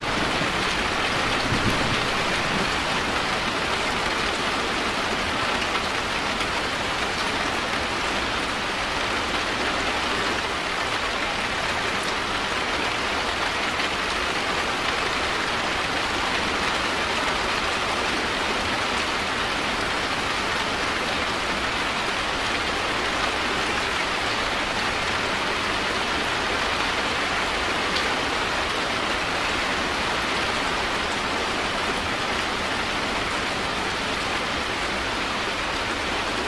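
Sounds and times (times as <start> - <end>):
rain: 0.0 - 36.4
thunder: 1.3 - 2.8.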